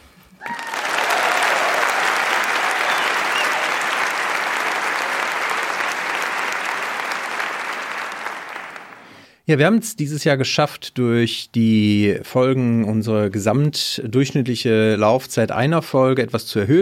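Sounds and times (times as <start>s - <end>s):
applause: 0.4s - 9.2s
speech: 9.5s - 16.7s.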